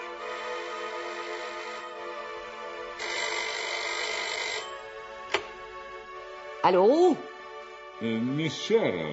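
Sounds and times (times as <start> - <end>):
telephone ringing: 0.2 - 5.5
sharp click: 5.2 - 5.5
speech: 6.7 - 7.3, 8.0 - 9.1.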